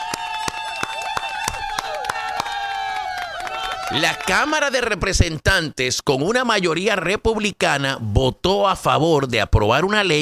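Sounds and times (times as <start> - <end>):
crowd cheering and shouting: 0.0 - 4.7
loud applause: 0.0 - 4.8
speech: 3.9 - 10.2.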